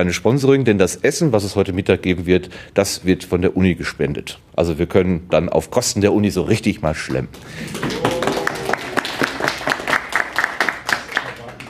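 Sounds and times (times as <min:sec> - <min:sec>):
speech: 0:00.0 - 0:08.1
audience applause: 0:07.4 - 0:11.6.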